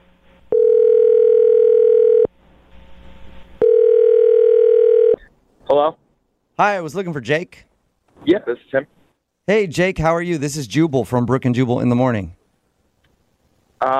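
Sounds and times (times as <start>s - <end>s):
telephone dialing tones: 0.5s - 2.3s, 3.6s - 5.2s
speech: 6.6s - 7.7s, 8.3s - 12.4s.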